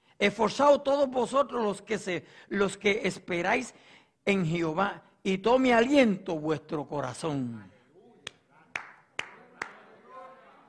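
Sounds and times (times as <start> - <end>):
speech: 0.2 - 7.7
hands clapping: 8.2 - 9.9.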